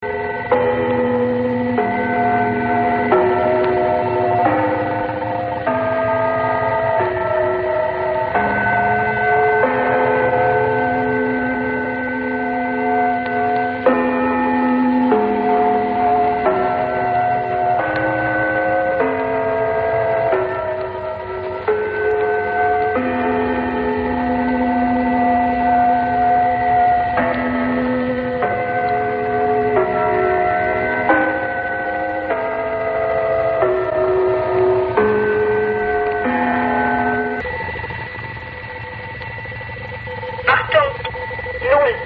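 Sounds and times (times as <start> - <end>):
gong: 0.0 - 42.0.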